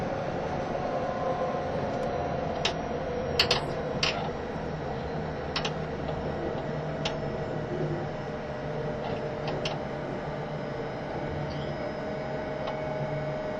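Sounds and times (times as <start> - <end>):
E351 series limited express train rumble and hum: 0.0 - 13.5
sharp clicks and knocks: 3.4 - 4.3, 5.6 - 7.2, 9.0 - 9.8.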